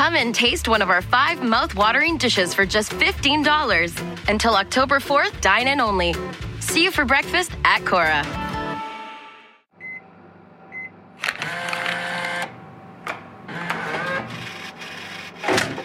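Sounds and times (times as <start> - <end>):
speech: 0.1 - 8.4
vending machine beeps: 9.8 - 10.1, 10.7 - 12.5
vending machine motor whirring: 11.2 - 15.8.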